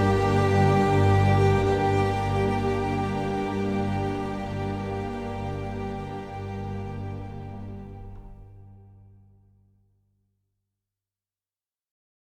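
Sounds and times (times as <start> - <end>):
instrumental music: 0.0 - 9.5.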